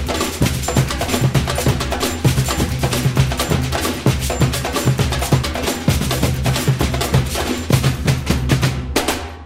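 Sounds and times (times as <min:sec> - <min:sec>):
samba loop: 0:00.0 - 0:09.4.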